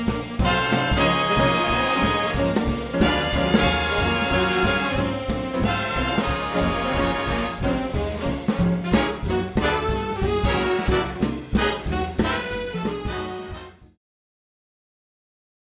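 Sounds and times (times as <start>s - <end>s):
jazz instruments playing: 0.0s - 14.0s.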